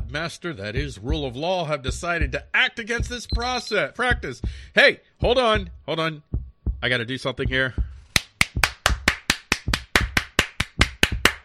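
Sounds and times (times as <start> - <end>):
speech: 0.1 - 7.9
sarcastic hand clap: 8.1 - 11.4.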